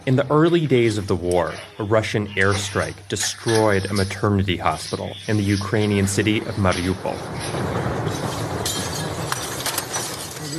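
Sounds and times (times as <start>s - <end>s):
speech: 0.0s - 8.4s
glass shattering onto pavement: 7.2s - 10.5s.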